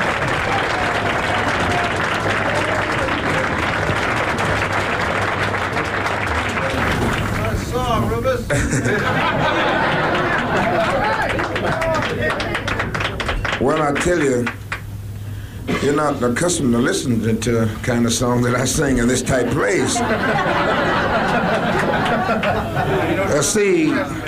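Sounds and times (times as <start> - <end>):
laughter: 0.0 - 12.9, 19.2 - 24.2
crowd applauding: 0.0 - 14.9, 19.6 - 24.2
speech: 14.0 - 14.6, 15.8 - 24.0.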